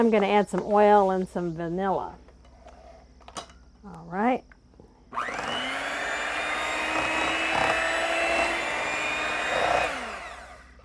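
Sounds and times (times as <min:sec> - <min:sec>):
speech: 0:00.0 - 0:02.2, 0:03.8 - 0:04.5
electric mixer mixing sugar, pumpkin and eggs: 0:05.1 - 0:10.8.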